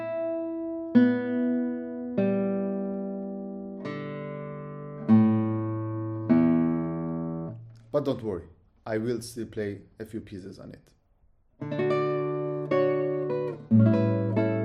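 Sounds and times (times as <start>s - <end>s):
single notes plucked on a guitar: 0.0s - 7.9s, 11.6s - 14.6s
speech: 8.0s - 11.0s.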